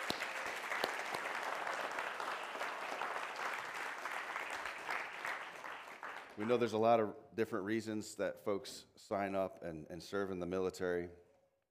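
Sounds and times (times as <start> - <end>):
audience applauding: 0.0 - 6.6
speech: 6.4 - 11.2.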